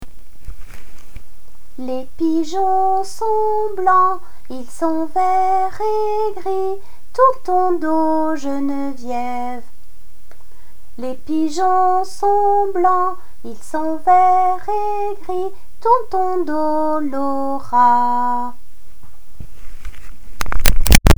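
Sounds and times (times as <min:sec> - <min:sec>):
nursery rhyme song: 0:01.8 - 0:09.7, 0:11.0 - 0:18.6.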